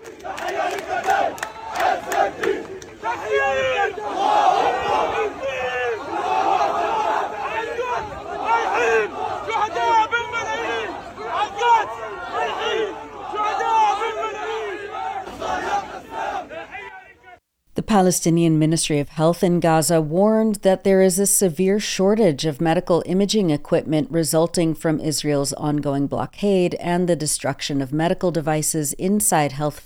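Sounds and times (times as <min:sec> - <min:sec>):
massive crowd of mourners at funeral procession: 0:00.0 - 0:17.4
speech: 0:18.0 - 0:29.8.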